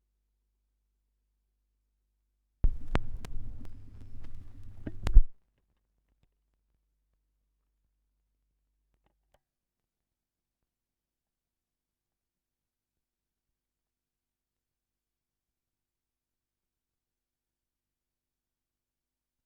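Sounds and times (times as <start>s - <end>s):
78rpm record surface noise: 2.6s - 5.3s.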